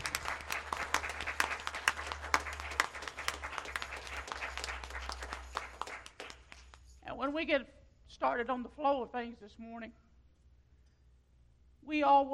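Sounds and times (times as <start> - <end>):
church congregation applauding visitors at a morning service: 0.0 - 7.0
speech: 7.3 - 10.0, 11.9 - 12.3.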